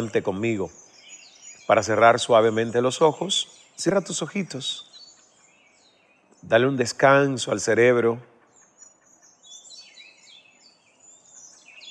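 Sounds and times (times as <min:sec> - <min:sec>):
speech: 0:00.0 - 0:00.9, 0:01.7 - 0:04.9, 0:06.4 - 0:08.3
distant birds singing in nature: 0:00.0 - 0:11.8.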